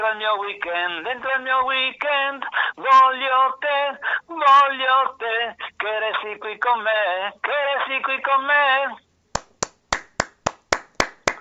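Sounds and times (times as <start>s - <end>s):
speech: 0.1s - 9.1s
hand claps by a single person: 9.4s - 11.4s.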